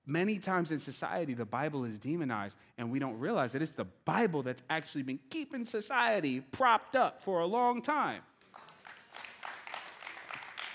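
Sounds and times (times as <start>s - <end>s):
speech: 0.1s - 8.3s
few audience claps: 8.3s - 10.7s.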